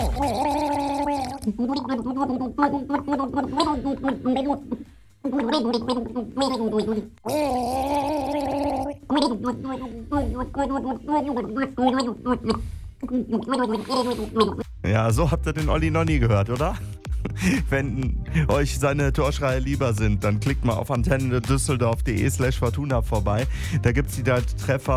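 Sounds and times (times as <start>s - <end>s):
people gargling a song with water: 0.0s - 4.7s, 5.3s - 12.6s
speech: 1.5s - 24.9s.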